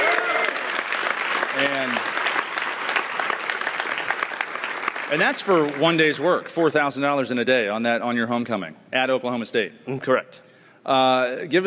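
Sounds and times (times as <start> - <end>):
audience applause: 0.0 - 6.2
speech: 1.6 - 2.2, 5.1 - 11.6.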